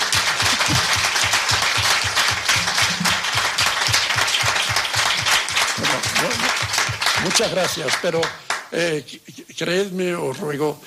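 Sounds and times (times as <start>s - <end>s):
crowd applause: 0.0s - 8.7s
speech: 7.4s - 10.8s.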